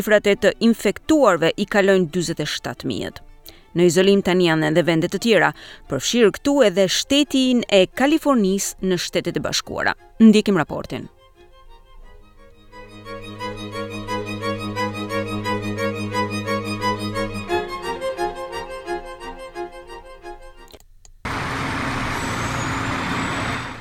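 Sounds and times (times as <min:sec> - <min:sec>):
speech: 0:00.0 - 0:11.2
pulsing tonal hum: 0:12.3 - 0:19.5
military trucks driving through the streets of Bergamo: 0:21.3 - 0:23.8.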